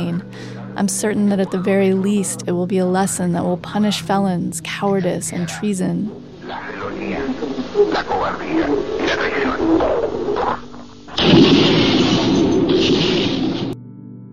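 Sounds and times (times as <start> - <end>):
speech: 0.0 - 11.6
explosions in an archival radio broadcast: 9.0 - 13.8.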